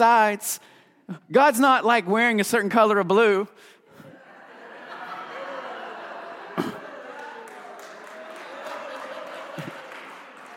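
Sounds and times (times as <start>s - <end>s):
speech: 0.0s - 3.8s
laughter: 3.9s - 10.5s
audience clapping: 6.5s - 10.5s.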